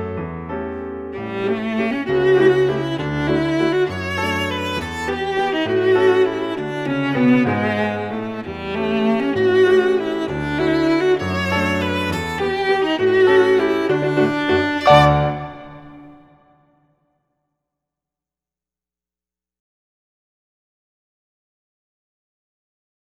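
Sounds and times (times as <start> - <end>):
waltz: 0.2 - 16.4.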